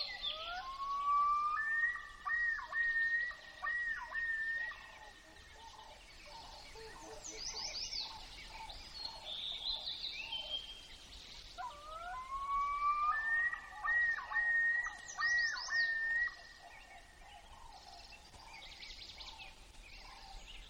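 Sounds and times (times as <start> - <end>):
common loon chorus: 0.2 - 8.2, 11.6 - 16.6.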